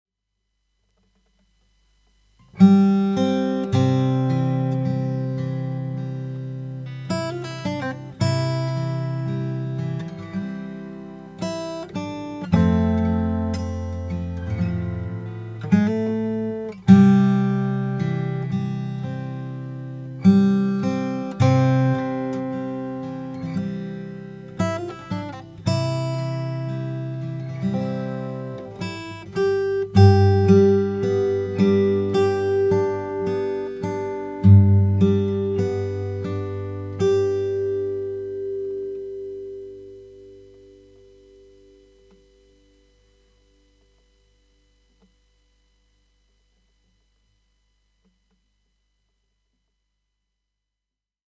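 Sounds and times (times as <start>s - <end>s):
Yamaha L31 guitar: 0.9s - 45.3s.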